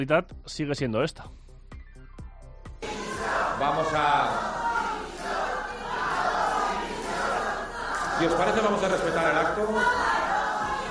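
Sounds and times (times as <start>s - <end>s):
speech: 0.0s - 1.4s, 3.6s - 4.5s, 8.2s - 10.2s
crowd shouting protest chants: 2.8s - 10.8s.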